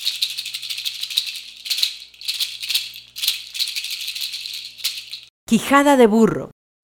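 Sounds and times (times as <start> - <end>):
seed-shell chachas rattle shaken: 0.0 - 5.3
speech: 5.5 - 6.5.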